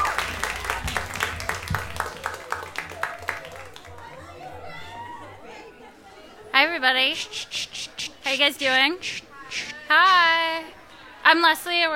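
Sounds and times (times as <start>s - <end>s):
audience applause: 0.0s - 4.5s
speech: 6.8s - 10.7s, 11.3s - 11.9s.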